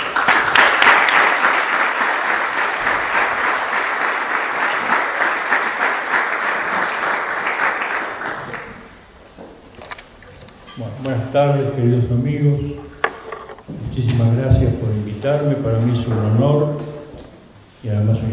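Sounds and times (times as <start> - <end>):
audience applause at a lecture: 0.0 - 9.0
speech: 11.3 - 12.9, 14.0 - 16.9, 17.8 - 18.3.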